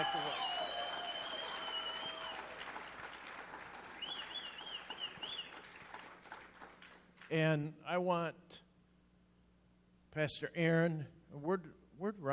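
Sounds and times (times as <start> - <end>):
people clapping: 0.0 - 7.5
speech: 7.3 - 8.6, 10.1 - 12.3.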